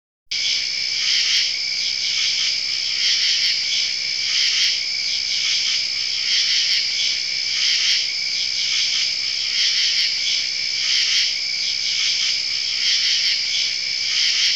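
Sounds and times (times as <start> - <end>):
crickets chorus: 0.3 - 14.5.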